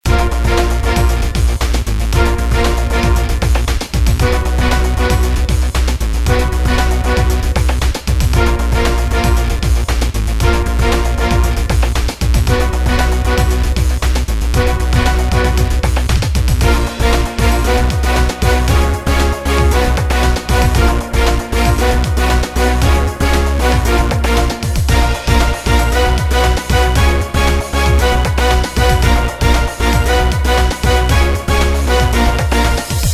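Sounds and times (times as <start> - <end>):
battle music: 0.0 - 33.1.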